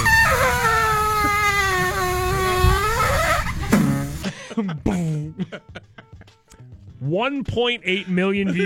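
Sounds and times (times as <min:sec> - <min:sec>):
waffle maker making a farting noise: 0:00.0 - 0:04.3
laughter: 0:04.2 - 0:06.5, 0:08.0 - 0:08.6
speech: 0:07.0 - 0:08.6.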